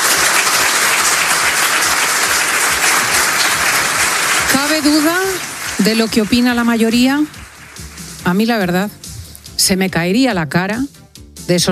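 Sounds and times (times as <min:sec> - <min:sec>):
loud sustained applause from a large crowd: 0:00.0 - 0:08.5
speech: 0:04.7 - 0:07.4, 0:08.2 - 0:09.0, 0:09.6 - 0:11.7.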